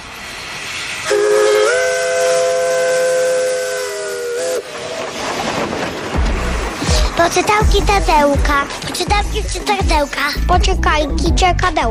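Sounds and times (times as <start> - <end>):
train rolling along: 0.0 - 11.8
steam train whistle: 1.0 - 5.1
speech: 7.3 - 11.8.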